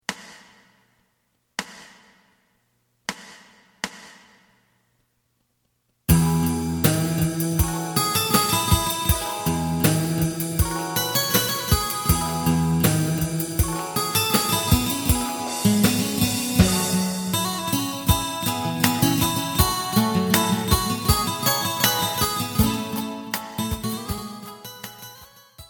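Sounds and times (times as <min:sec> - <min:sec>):
bass: 0:06.1 - 0:23.0.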